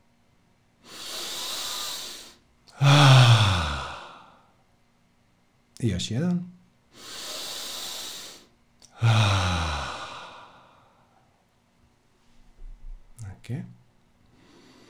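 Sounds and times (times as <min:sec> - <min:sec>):
deep breaths with strong exhales: 0:00.8 - 0:04.6, 0:06.9 - 0:11.4, 0:14.3 - 0:14.8
speech: 0:05.8 - 0:07.2, 0:13.5 - 0:13.8.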